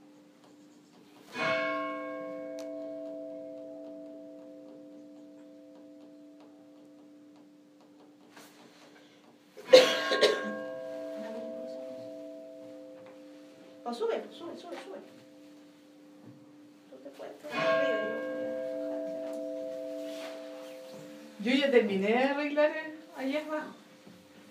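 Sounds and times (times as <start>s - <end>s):
church bell ringing: 1.3s - 7.8s, 9.6s - 24.4s
speech: 13.9s - 15.2s, 21.4s - 23.8s.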